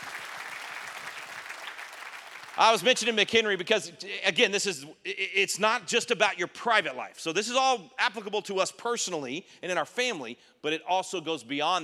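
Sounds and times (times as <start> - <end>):
audience applause during a faith-themed talk: 0.0 - 2.8
speech: 2.6 - 11.8.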